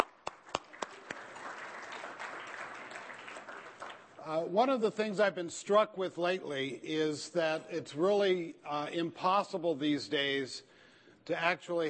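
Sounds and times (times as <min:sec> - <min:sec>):
crowd applause: 0:00.0 - 0:04.3
speech: 0:04.3 - 0:11.8.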